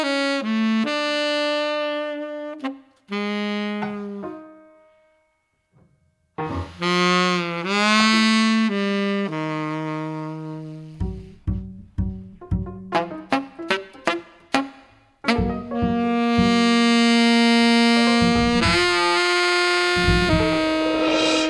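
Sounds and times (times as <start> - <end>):
jazz saxophone: 0.0 - 4.7, 6.4 - 11.5, 12.8 - 21.4
jazz piano: 0.0 - 5.1, 5.8 - 21.4
jazz double bass: 10.9 - 13.2, 15.3 - 17.1, 18.0 - 19.0, 20.0 - 21.0
jazz drums: 11.0 - 12.9, 15.4 - 16.9, 18.1 - 19.0, 20.0 - 21.4.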